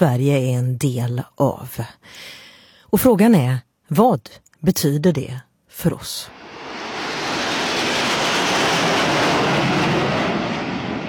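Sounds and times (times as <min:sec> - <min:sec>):
speech: 0:00.0 - 0:06.4
fighter jets roaring low over the rooftops of Paris during the 14 July flyover: 0:06.3 - 0:11.0.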